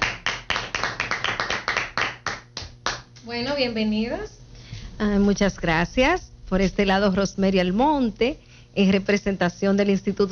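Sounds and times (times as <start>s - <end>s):
audience applause: 0.0s - 3.0s
speech: 3.3s - 4.4s, 5.0s - 10.3s.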